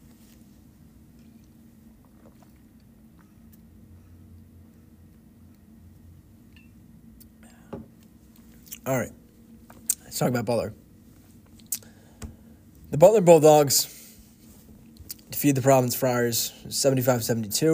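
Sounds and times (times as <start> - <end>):
person sipping water: 1.2 - 3.7, 11.6 - 12.0
slurp: 1.3 - 3.6
speech: 8.8 - 9.2, 10.2 - 10.8, 13.0 - 14.0, 15.4 - 17.7.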